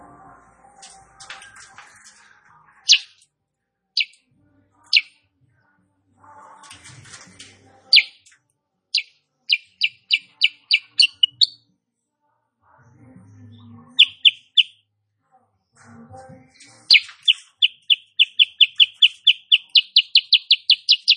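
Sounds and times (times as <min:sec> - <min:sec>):
female sooty-headed bulbul chirping song: 0:02.8 - 0:03.2, 0:04.0 - 0:04.2, 0:04.8 - 0:05.2, 0:07.9 - 0:08.3, 0:08.9 - 0:11.6, 0:14.0 - 0:14.8, 0:16.8 - 0:21.1.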